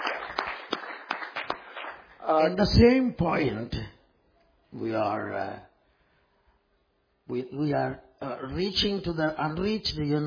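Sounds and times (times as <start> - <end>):
audience clapping: 0.0 - 2.6
speech: 2.3 - 3.9, 4.7 - 5.7, 7.3 - 10.2.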